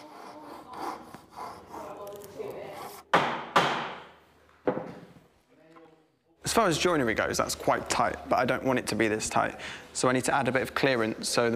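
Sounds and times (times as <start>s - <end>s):
Japanese pull saw cutting through wood: 0.0s - 2.1s
sharp wooden knocks: 3.1s - 5.0s
speech: 6.5s - 11.5s.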